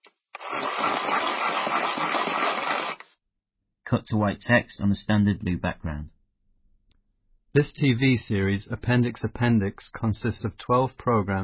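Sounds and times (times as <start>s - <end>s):
pencil being sharpened in desk sharpener: 0.3s - 3.1s
speech: 3.9s - 6.2s, 7.6s - 11.4s.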